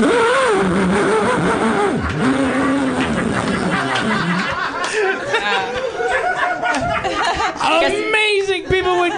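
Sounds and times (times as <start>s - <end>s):
man's voice imitating a chainsaw: 0.0s - 4.2s
people chuckling: 1.4s - 7.8s
people chattering: 2.2s - 9.1s.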